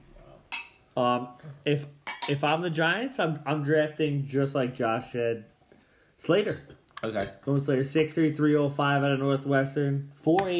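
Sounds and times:
speech: 1.0 - 5.5, 6.2 - 10.5
glasses clinking in a toast: 2.0 - 2.7.

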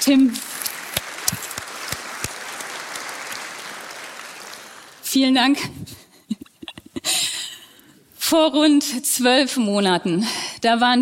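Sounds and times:
speech: 0.0 - 0.5, 5.2 - 6.0, 8.3 - 11.0
audience applause: 0.0 - 5.1.

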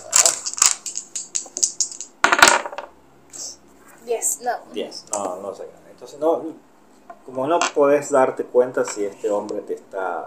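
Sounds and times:
dice rolling on table: 0.2 - 2.9
speech: 4.3 - 10.2.

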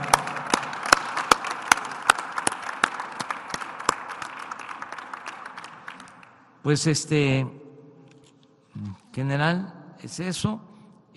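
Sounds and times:
audience applause: 0.0 - 6.5
speech: 6.6 - 7.6, 9.2 - 11.1.

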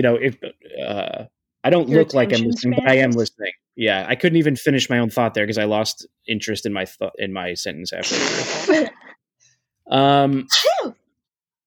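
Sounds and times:
speech: 0.0 - 9.2, 9.9 - 11.0
sneeze: 10.5 - 11.0.

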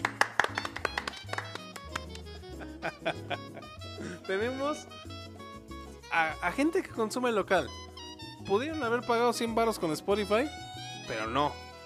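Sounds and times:
audience applause: 0.0 - 2.3
laughter: 2.5 - 4.2
speech: 2.8 - 3.5, 4.3 - 5.2, 6.1 - 7.8, 8.5 - 11.6.

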